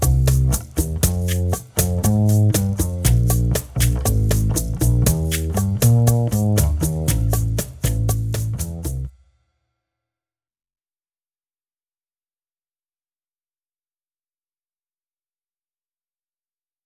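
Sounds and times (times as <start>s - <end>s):
Latin bossa drum and bass loop: 0.0s - 9.1s.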